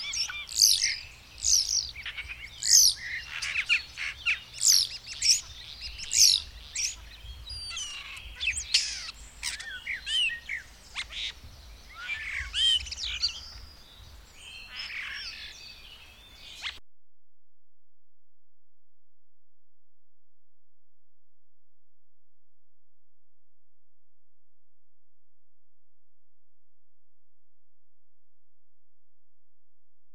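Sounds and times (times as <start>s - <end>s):
birds singing with twittering phrases: 0.0s - 16.8s.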